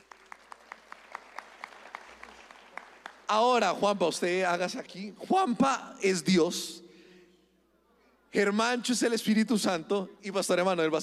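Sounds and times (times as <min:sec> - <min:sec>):
loud applause: 0:00.0 - 0:03.4
speech: 0:03.3 - 0:06.8, 0:08.4 - 0:11.0.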